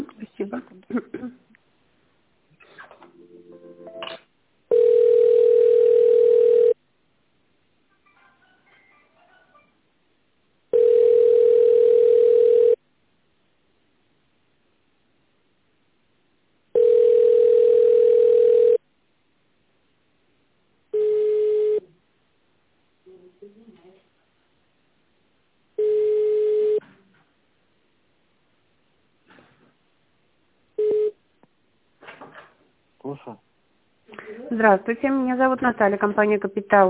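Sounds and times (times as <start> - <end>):
telephone dialing tones: 4.7 - 6.8, 10.8 - 12.8, 16.8 - 18.8, 21.0 - 21.8, 25.8 - 26.8, 30.8 - 31.2
speech: 34.6 - 36.8.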